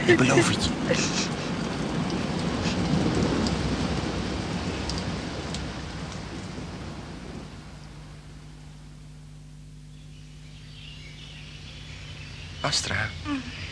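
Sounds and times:
speech: 0.1s - 1.4s, 12.6s - 13.6s
thunder: 0.7s - 7.8s.

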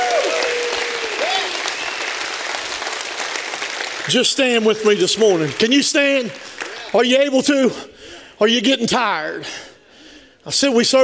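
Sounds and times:
audience hand clap of praise: 0.0s - 7.3s
speech: 4.1s - 9.7s, 10.4s - 11.0s.

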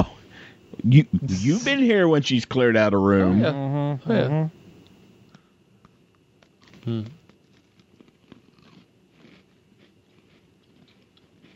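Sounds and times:
speech: 0.8s - 4.6s, 6.8s - 7.2s
chewing Oreo-flavoured popping candy: 5.8s - 11.5s.

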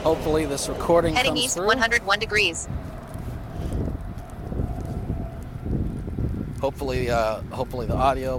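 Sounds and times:
speech: 0.0s - 2.9s, 6.6s - 8.3s
breezy wind: 0.0s - 8.3s
road traffic noise: 0.0s - 8.3s.

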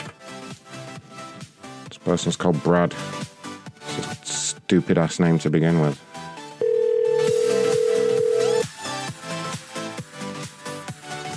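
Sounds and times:
music: 0.0s - 11.3s
speech: 2.0s - 3.3s, 4.7s - 6.1s
telephone ringback tone on an unanswered call: 6.6s - 8.7s.

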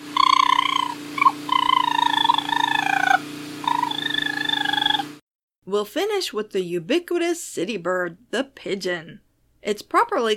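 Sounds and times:
raccoon vocalizing: 0.0s - 5.1s
speech: 5.7s - 10.3s.

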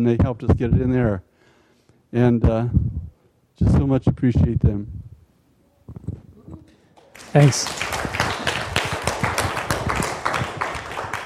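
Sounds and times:
speech: 0.0s - 1.3s, 2.1s - 3.0s, 3.6s - 5.0s, 7.2s - 8.1s
audience applauding: 7.0s - 11.2s.

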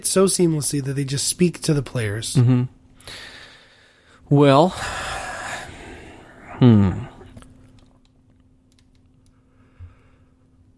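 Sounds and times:
speech: 0.0s - 3.3s, 4.3s - 5.1s, 6.6s - 7.1s
person yawning: 4.7s - 7.4s.

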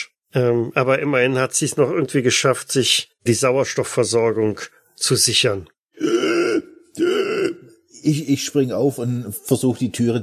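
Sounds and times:
speech: 0.0s - 5.8s, 8.0s - 10.2s
whimpering and moaning in pain: 6.0s - 8.0s.

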